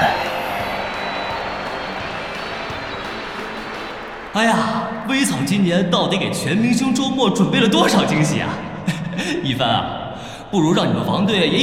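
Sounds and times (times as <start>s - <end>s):
audience applause welcoming players on stage: 0.0s - 5.7s
speech: 4.4s - 8.6s, 9.2s - 9.9s, 10.5s - 11.6s.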